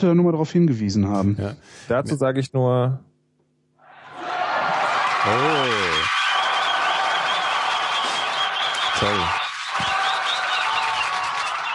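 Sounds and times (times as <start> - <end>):
speech: 0.0 - 3.1, 5.2 - 6.1, 9.0 - 9.4
applause sound effect from an app: 4.0 - 11.7.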